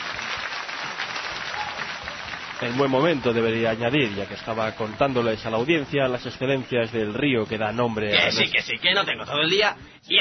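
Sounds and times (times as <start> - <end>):
audience applause welcoming Shigeru Miyamoto: 0.0 - 6.8
speech: 2.6 - 10.1.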